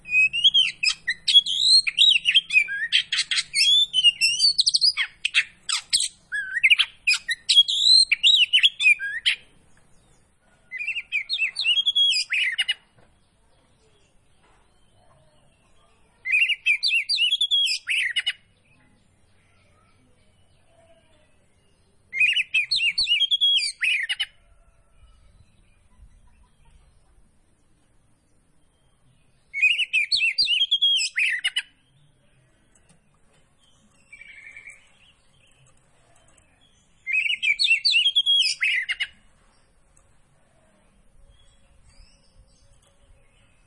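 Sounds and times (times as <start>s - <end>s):
Oriental magpie-robin singing: 0.0s - 9.5s, 10.7s - 12.9s, 14.0s - 24.4s, 28.6s - 39.2s.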